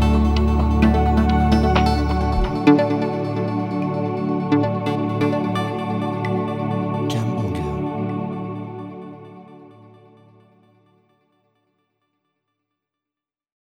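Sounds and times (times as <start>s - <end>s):
corporate music: 0.0s - 9.7s.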